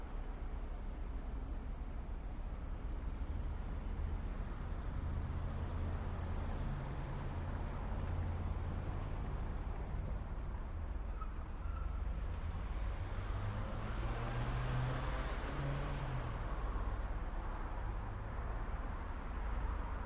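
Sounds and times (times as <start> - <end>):
medium city ambience: 0.0 - 20.0.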